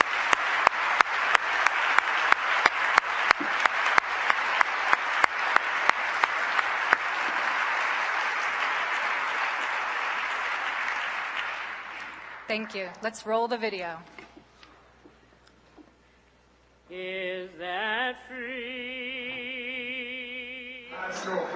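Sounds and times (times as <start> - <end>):
audience round of applause: 0.0 - 13.0
speech: 12.5 - 14.2, 17.0 - 18.7.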